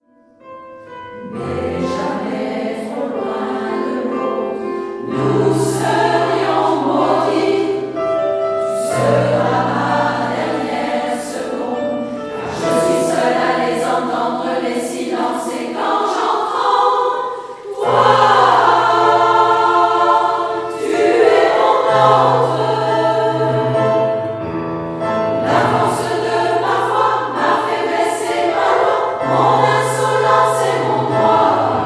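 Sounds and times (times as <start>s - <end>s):
chorale: 0.3s - 31.8s.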